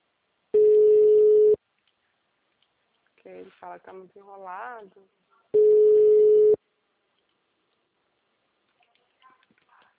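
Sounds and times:
telephone call tone while calling someone: 0.6 - 1.6, 5.6 - 6.6
speech: 3.3 - 5.2.

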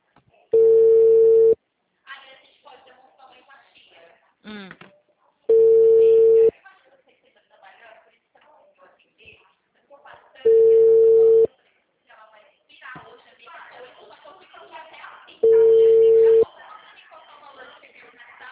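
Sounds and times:
ringback tone of an unanswered outgoing phone call: 0.6 - 1.6, 5.5 - 6.5, 10.5 - 11.5, 15.4 - 16.4.

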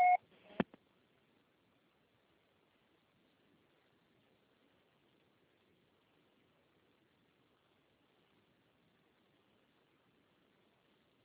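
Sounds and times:
answering machine two-tone electronic beep: 0.0 - 0.2
faint hiss: 0.1 - 11.2.

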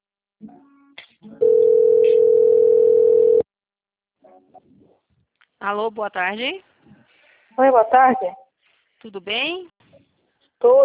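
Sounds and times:
telephone dial tone: 1.4 - 3.4
speech: 5.6 - 6.7, 7.6 - 8.4, 9.0 - 9.7, 10.6 - 10.8.

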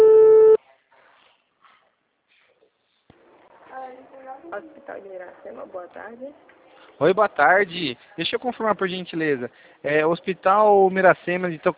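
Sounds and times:
buzzy phone line ringback tone: 0.0 - 0.6
speech: 4.5 - 11.7.

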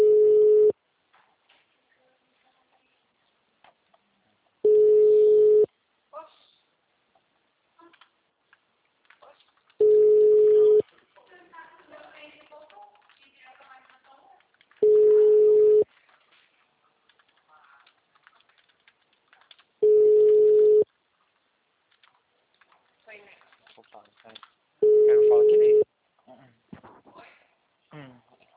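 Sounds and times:
telephone line tone of a called number not answering: 0.0 - 0.8, 4.6 - 5.7, 9.8 - 10.8, 14.8 - 15.9, 19.8 - 20.9, 24.8 - 25.8.

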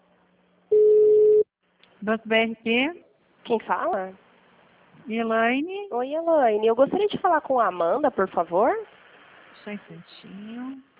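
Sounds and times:
telephone tone on a bank's line while a call is transferred: 0.7 - 1.5
speech: 2.0 - 4.2, 5.0 - 9.0, 9.6 - 10.9.

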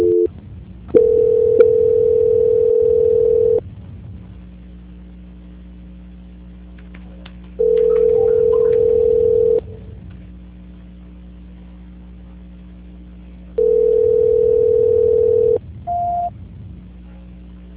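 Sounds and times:
telephone line tones during a call transfer: 0.0 - 0.3, 1.0 - 3.6, 7.6 - 9.7, 13.6 - 16.3
low hum: 0.0 - 17.7.

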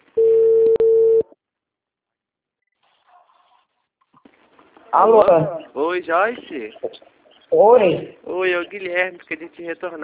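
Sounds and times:
telephone ringback tone while placing a call: 0.2 - 1.3
speech: 4.9 - 10.0.

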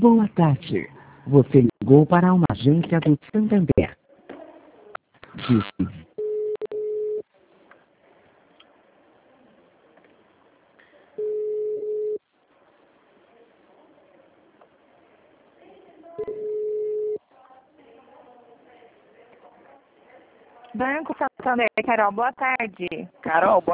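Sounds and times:
speech: 0.0 - 4.0, 5.4 - 6.0, 20.8 - 23.7
telephone tone beeps after a call to a bank branch dropped: 5.6 - 7.2, 11.2 - 12.2, 16.2 - 17.2.

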